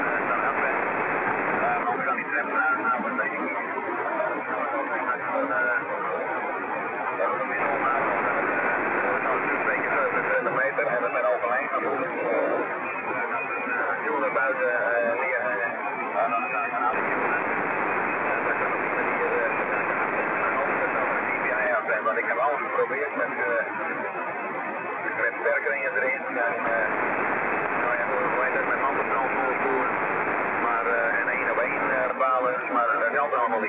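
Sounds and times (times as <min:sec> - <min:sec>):
noise: 0:00.0 - 0:33.6.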